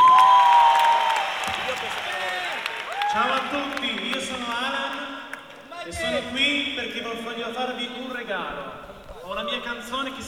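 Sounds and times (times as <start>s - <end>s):
audience applause welcoming a Turin performer on stage: 0.0s - 5.7s
audience cheering: 0.0s - 6.2s
speech: 5.8s - 10.2s.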